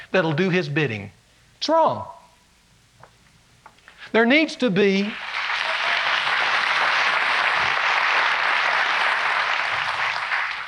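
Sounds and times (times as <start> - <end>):
speech: 0.1 - 2.2, 4.1 - 5.3
hand claps: 5.1 - 10.6.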